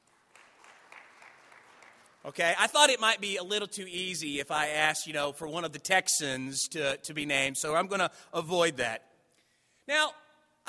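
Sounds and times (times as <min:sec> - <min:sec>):
audience applause: 0:00.0 - 0:02.3
speech: 0:02.2 - 0:09.1, 0:09.9 - 0:10.6.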